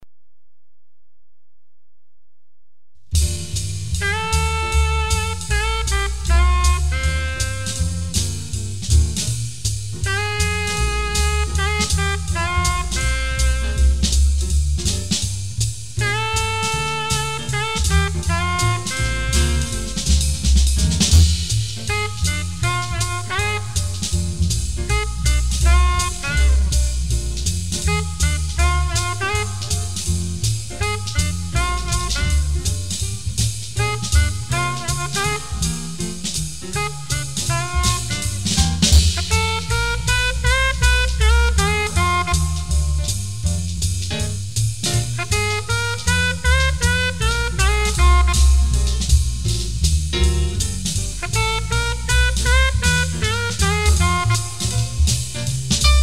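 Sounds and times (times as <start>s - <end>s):
blues groove: 3.2s - 56.0s.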